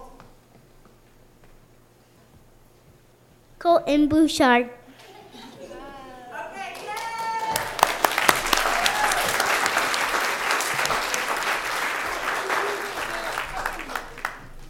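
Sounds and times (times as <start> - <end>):
speech: 3.6 - 4.8
applause from parents, grandparents and friends at a school event: 6.5 - 14.6.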